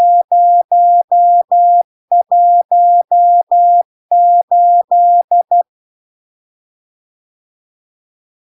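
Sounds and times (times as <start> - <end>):
CW Morse code beeps: 0.0 - 5.6.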